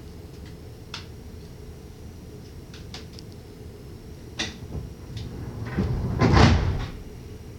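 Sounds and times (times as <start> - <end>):
train door closing: 4.3 - 7.5.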